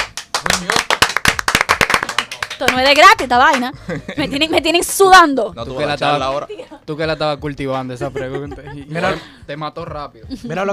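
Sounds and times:
applause: 0.0s - 3.6s
speech: 0.4s - 0.8s, 2.6s - 10.7s
laughter: 6.5s - 9.3s.

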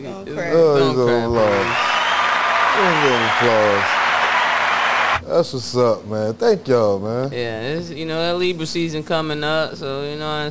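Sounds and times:
speech: 0.1s - 1.9s, 2.8s - 4.0s, 5.3s - 10.4s
applause: 1.3s - 5.2s.

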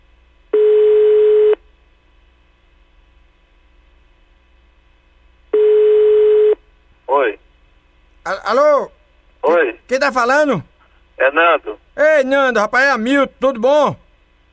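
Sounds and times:
telephone call ringing tone: 0.5s - 1.6s, 5.5s - 6.6s
speech: 8.2s - 9.0s, 9.9s - 14.0s.

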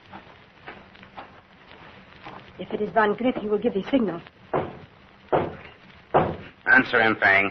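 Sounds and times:
footsteps outside the door: 0.0s - 6.6s
speech: 2.6s - 4.4s, 6.8s - 7.4s.

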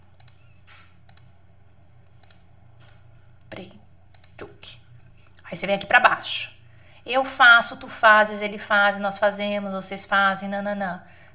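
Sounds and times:
computer mouse clicks selecting a French verb conjugate option: 0.2s - 1.4s, 2.1s - 3.0s, 4.1s - 4.5s
speech: 5.5s - 11.2s.

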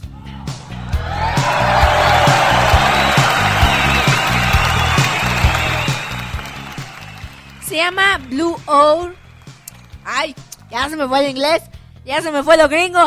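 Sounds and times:
audience applause: 0.6s - 10.2s
speech: 7.8s - 9.2s, 10.1s - 13.0s.

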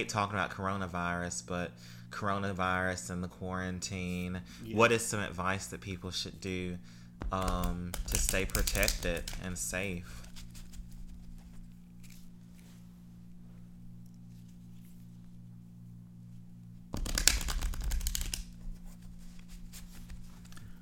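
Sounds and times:
speech: 0.0s - 10.2s
playing cards shuffling: 7.2s - 12.9s, 16.9s - 20.8s.

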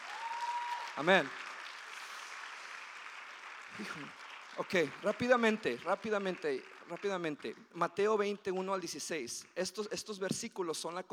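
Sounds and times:
audience applause: 0.0s - 7.6s
speech: 1.0s - 1.4s, 3.8s - 11.1s.

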